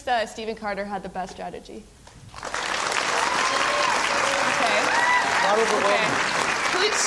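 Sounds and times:
speech: 0:00.1 - 0:02.0, 0:05.4 - 0:07.0
scattered audience applause: 0:02.3 - 0:07.0.

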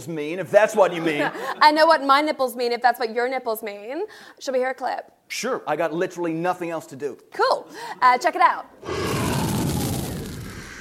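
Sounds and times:
speech: 0:00.0 - 0:09.2
dragon roaring with a deep rumbling bellow: 0:08.8 - 0:10.8.

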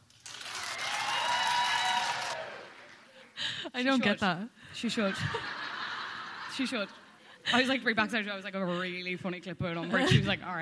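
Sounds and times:
audience clapping: 0:00.0 - 0:03.4
speech: 0:03.7 - 0:05.6, 0:06.6 - 0:10.6
laughter: 0:04.8 - 0:07.8.

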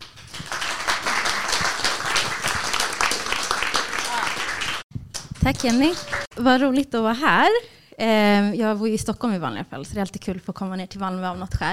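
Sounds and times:
crowd applause: 0:00.0 - 0:04.8, 0:05.5 - 0:06.3
speech: 0:05.5 - 0:11.7.

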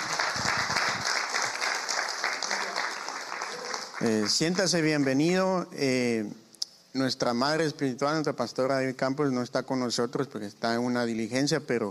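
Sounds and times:
audience clapping: 0:00.0 - 0:05.3
speech: 0:04.0 - 0:11.8.

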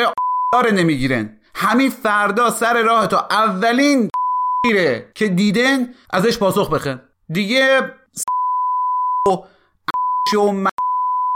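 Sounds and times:
speech: 0:00.0 - 0:08.4, 0:09.2 - 0:09.5, 0:10.3 - 0:10.7
high-pitched censor beep: 0:00.1 - 0:00.6, 0:04.1 - 0:04.7, 0:08.2 - 0:11.3.

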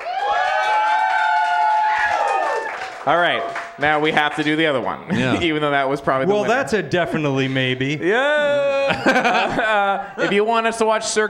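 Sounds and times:
audience yelling and hooting: 0:00.0 - 0:02.7
audience clapping: 0:00.0 - 0:05.0
speech: 0:03.1 - 0:11.2
laughter: 0:05.0 - 0:05.7, 0:08.1 - 0:10.7.

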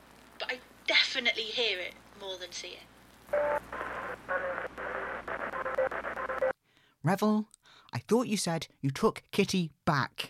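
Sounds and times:
speech: 0:01.2 - 0:03.7, 0:07.0 - 0:10.2
radio interference: 0:03.2 - 0:06.6.

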